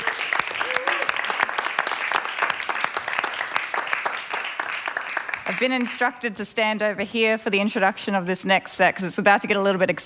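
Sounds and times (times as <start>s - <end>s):
audience applause: 0.0s - 5.8s
speech: 5.5s - 10.0s.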